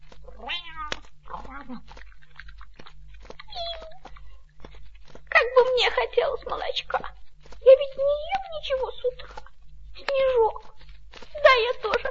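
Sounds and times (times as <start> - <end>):
faint low hum: 0.0 - 12.1
house cat meowing: 0.3 - 1.9
speech: 5.8 - 7.2, 7.9 - 9.4, 10.0 - 10.7, 11.5 - 12.1.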